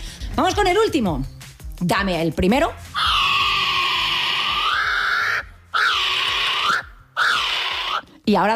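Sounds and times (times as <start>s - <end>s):
speech: 0.4s - 2.8s, 8.3s - 8.5s
harsh bird calls: 3.0s - 8.0s.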